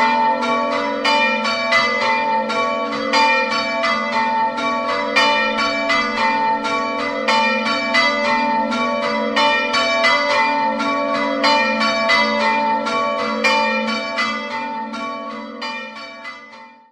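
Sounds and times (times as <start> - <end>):
bells in Campolonghetto: 0.0 - 16.9.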